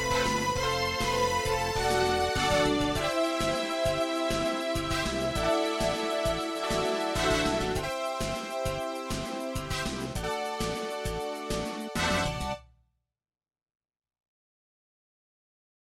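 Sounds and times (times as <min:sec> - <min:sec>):
MIDI battle music: 0:00.0 - 0:12.6.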